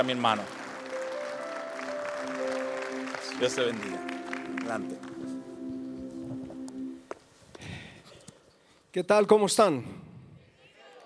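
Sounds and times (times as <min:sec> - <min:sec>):
speech: 0:00.0 - 0:00.6, 0:03.4 - 0:05.3, 0:09.0 - 0:10.0
audience applauding: 0:00.0 - 0:06.5.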